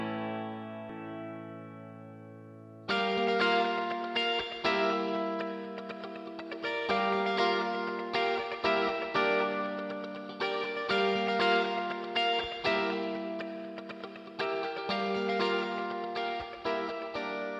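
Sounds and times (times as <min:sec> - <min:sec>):
guitar with large instrument digital reverb: 0:00.0 - 0:17.5.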